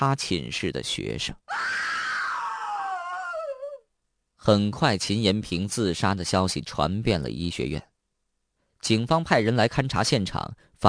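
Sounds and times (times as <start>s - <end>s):
speech: 0.0s - 1.9s, 4.4s - 7.9s, 8.8s - 10.8s
piercing scream: 1.5s - 3.8s.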